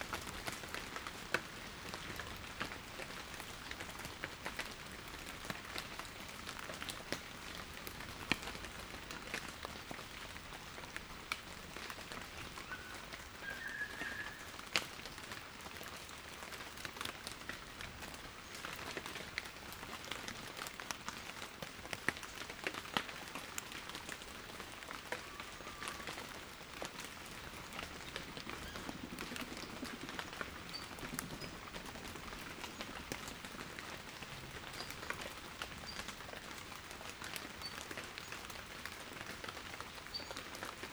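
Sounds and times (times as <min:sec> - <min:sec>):
rain in the Highlands: 0:00.0 - 0:40.9.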